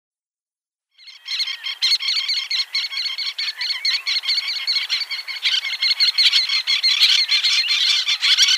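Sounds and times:
Little tern giving sharp high chattering calls and rasping kik notes: 1.0s - 8.5s.

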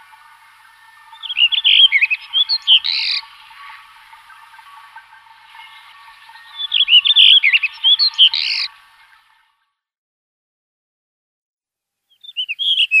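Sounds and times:
blue rock thrush giving quick chattering and whistled notes: 0.0s - 9.3s.

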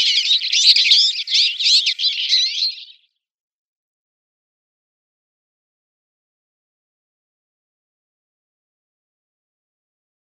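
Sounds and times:
Eurasian linnet singing buzzy notes and whistled slurs: 0.0s - 3.1s.

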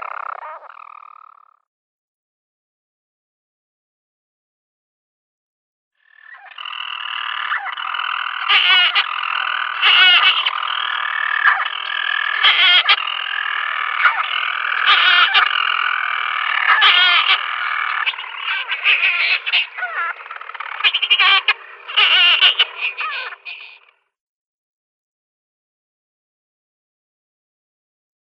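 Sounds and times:
European storm petrel purring call: 0.0s - 1.6s, 6.0s - 24.1s.

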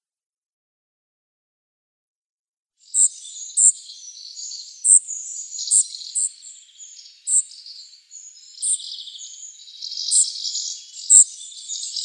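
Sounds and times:
spotted flycatcher calls: 2.8s - 12.0s.

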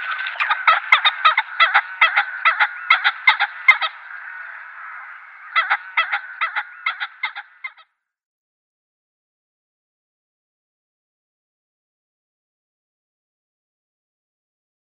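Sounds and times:
male Ring-necked Pheasant calls: 0.0s - 7.9s.

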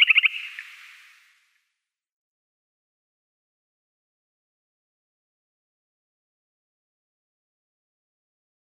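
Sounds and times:
Purple Sandpiper calls: 0.0s - 1.2s.

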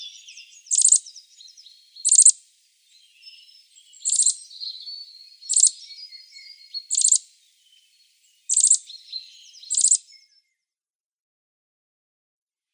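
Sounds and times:
Eurasian nuthatch giving clear whistled notes: 0.0s - 2.3s, 3.2s - 7.2s, 8.5s - 10.3s.

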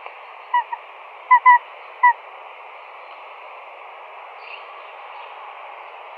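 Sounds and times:
female Tawny Owl shrieks: 0.5s - 2.2s.

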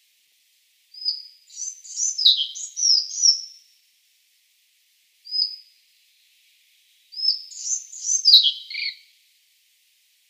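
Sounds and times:
collared flycatcher song: 0.9s - 3.8s, 5.2s - 9.2s.

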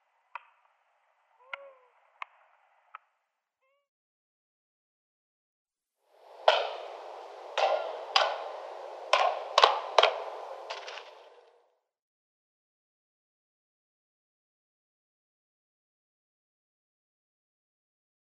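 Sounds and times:
Long-eared Owl calling: 6.3s - 11.5s.

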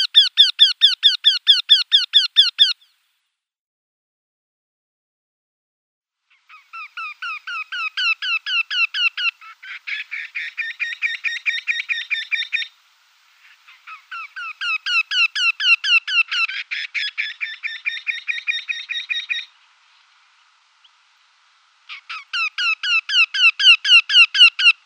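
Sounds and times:
Eurasian wryneck display call: 0.0s - 3.0s, 6.3s - 24.8s.

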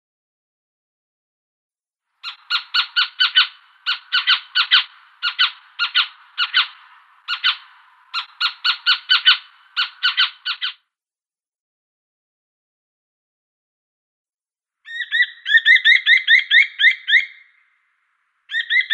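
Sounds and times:
Little Owl calls: 2.2s - 10.8s, 14.8s - 17.8s, 18.5s - 18.9s.

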